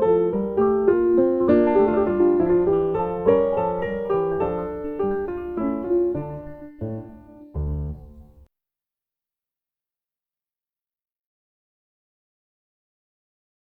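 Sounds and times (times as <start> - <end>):
minuet: 0.0 - 8.5.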